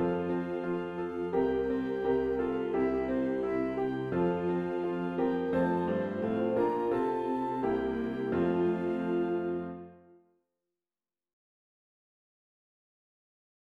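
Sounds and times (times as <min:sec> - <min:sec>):
instrumental music for recording: 0:00.0 - 0:10.2.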